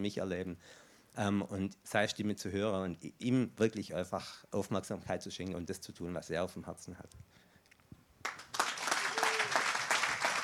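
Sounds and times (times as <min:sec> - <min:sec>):
speech: 0:00.0 - 0:07.4
audience applause: 0:08.2 - 0:10.4.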